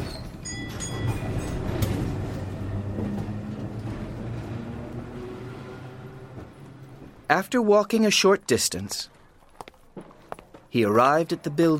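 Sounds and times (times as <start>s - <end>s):
tram rumbling along its rails: 0.0s - 7.7s
speech: 7.3s - 9.2s, 10.7s - 11.7s.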